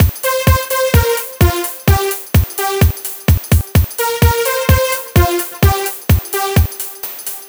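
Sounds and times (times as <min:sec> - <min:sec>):
nu dance electro loop at 128 bpm without snare: 0:00.0 - 0:07.4.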